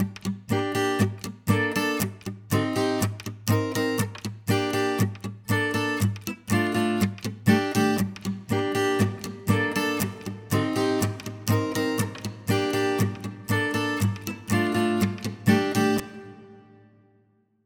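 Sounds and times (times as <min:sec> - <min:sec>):
guitar: 0:00.0 - 0:17.6.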